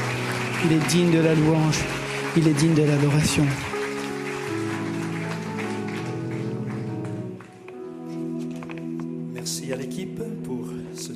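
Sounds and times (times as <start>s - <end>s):
people applauding: 0.0s - 7.7s
speech: 0.6s - 3.7s.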